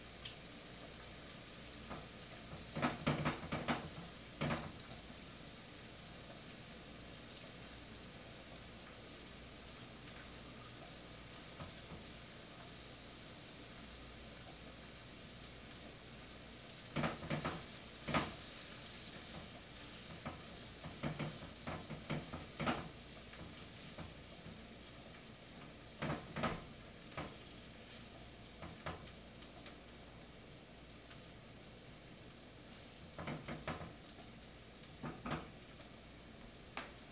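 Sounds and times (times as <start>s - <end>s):
ravioli with asparagus and red pepper sizzling in olive oil: 0.0s - 37.0s.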